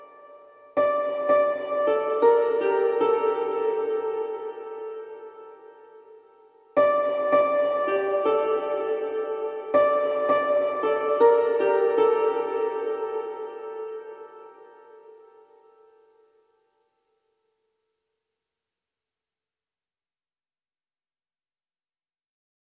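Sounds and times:
harp: 0:00.0 - 0:16.7.

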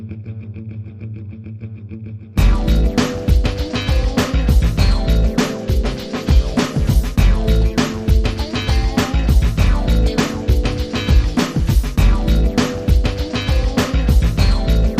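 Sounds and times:
sound effects: 0:02.4 - 0:14.9.

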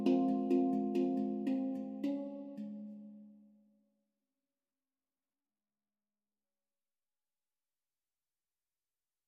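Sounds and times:
hang drum: 0:00.0 - 0:03.2.

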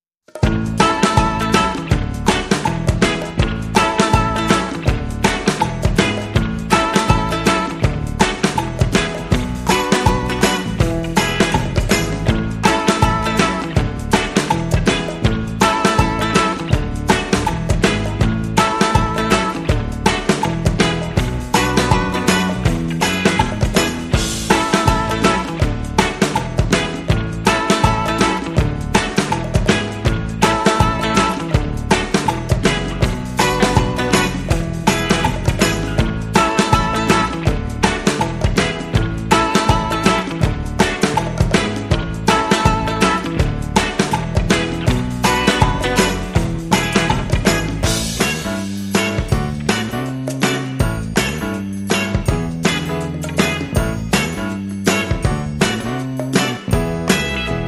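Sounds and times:
rhythm: 0:00.3 - 0:57.6.

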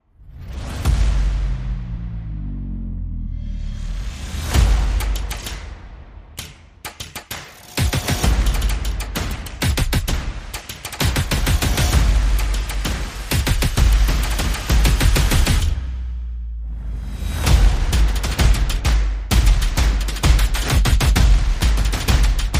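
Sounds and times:
percussion: 0:00.1 - 0:02.6, 0:03.3 - 0:22.5.

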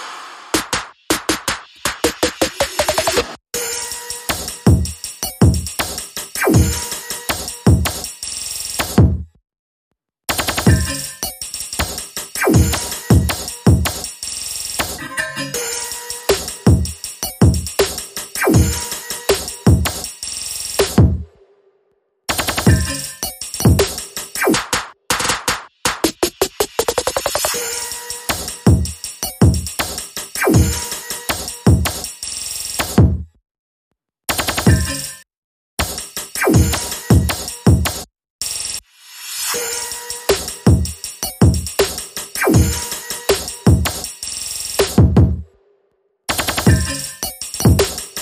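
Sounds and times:
simple drums playing: 0:00.6 - 0:03.4, 0:04.3 - 0:08.1, 0:08.8 - 0:09.2, 0:10.3 - 0:14.1, 0:16.3 - 0:20.1, 0:20.8 - 0:21.2, 0:22.3 - 0:27.5, 0:28.3 - 0:32.1, 0:32.8 - 0:33.2, 0:35.8 - 0:38.0, 0:40.3 - 0:44.1, 0:44.8 - 0:45.4, 0:46.3 - 0:48.1.

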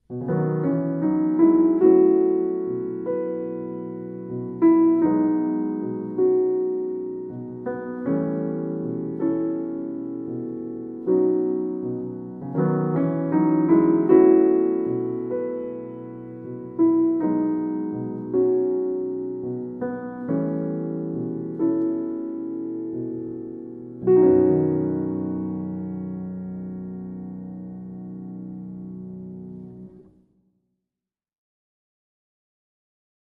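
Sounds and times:
solo piano: 0:00.0 - 0:30.3.

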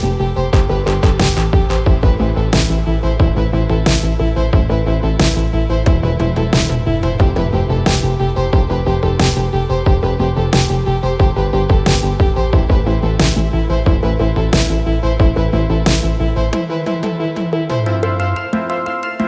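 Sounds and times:
music mix: 0:00.0 - 0:19.2.

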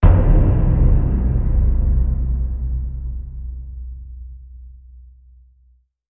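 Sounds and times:
hammer hitting down: 0:00.0 - 0:04.6.

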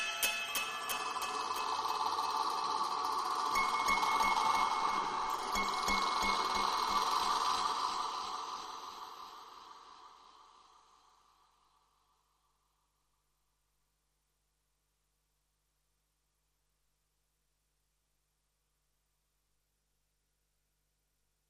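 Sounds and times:
guitar: 0:00.0 - 0:10.1.

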